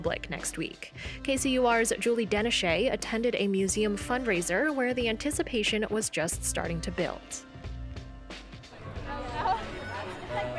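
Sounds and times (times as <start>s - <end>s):
speech: 0.0s - 7.5s
crowd chatter at a party on the lawn of the Kansas City Museum: 8.8s - 10.5s.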